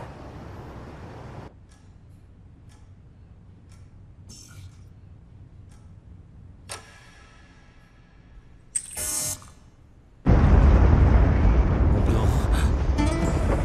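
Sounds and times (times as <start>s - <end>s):
earthquake rumbling: 10.2s - 13.6s.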